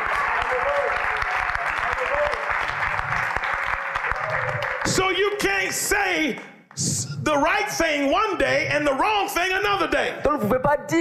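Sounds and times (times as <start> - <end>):
audience applause: 0.0 - 6.5
speech: 5.0 - 10.9.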